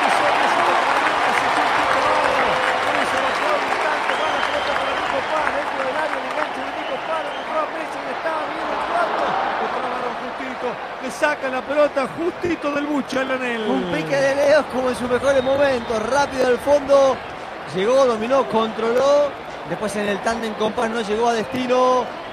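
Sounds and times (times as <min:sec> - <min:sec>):
large stadium crowd applauding and roaring: 0:00.0 - 0:22.3
speech: 0:11.4 - 0:22.2.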